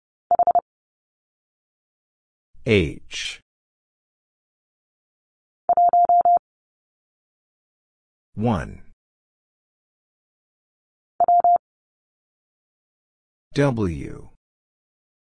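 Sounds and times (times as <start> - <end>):
Morse code letter w: 0.3 - 0.6, 5.7 - 6.4, 11.2 - 11.6.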